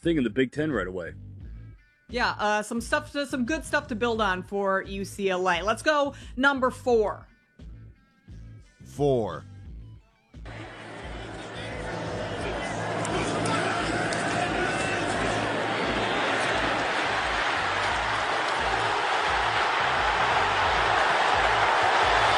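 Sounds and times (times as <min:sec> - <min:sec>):
speech: 0:00.0 - 0:01.3, 0:02.1 - 0:07.3, 0:09.0 - 0:09.5
large stadium crowd roaring at a football game: 0:10.5 - 0:22.3.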